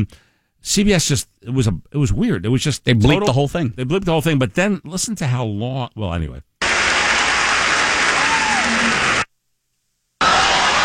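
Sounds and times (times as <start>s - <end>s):
speech: 0.0s - 6.5s
audience applauding and cheering: 6.6s - 9.3s, 10.2s - 10.8s.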